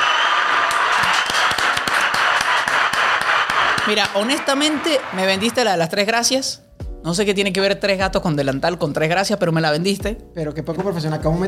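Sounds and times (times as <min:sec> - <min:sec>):
applause, hands clapping: 0:00.0 - 0:06.1
speech: 0:03.9 - 0:11.4.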